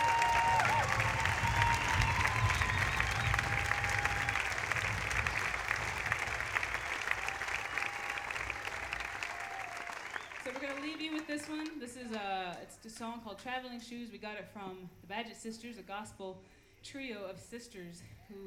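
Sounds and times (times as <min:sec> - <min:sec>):
audience applause for the crew of a live music show: 0:00.0 - 0:11.8
speech: 0:12.1 - 0:18.4.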